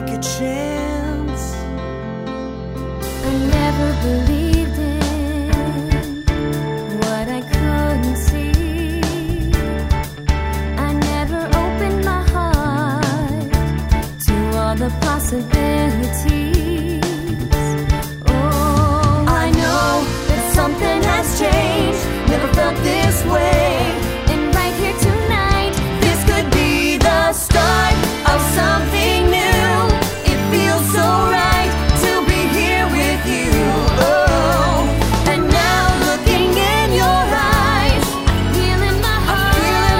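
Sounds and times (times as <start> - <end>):
vocals: 0.0 - 39.9.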